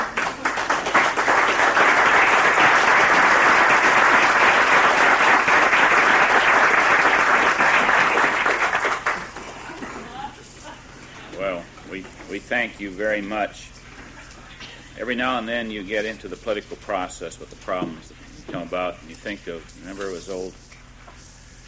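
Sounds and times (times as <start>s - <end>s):
Senate chamber applause: 0.0s - 10.2s
speech: 12.5s - 13.8s, 15.0s - 20.7s.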